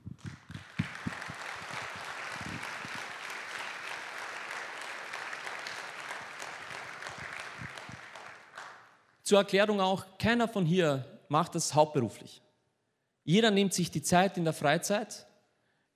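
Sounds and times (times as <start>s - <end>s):
audience applause: 0.0s - 8.9s
speech: 9.3s - 12.4s, 13.3s - 15.3s.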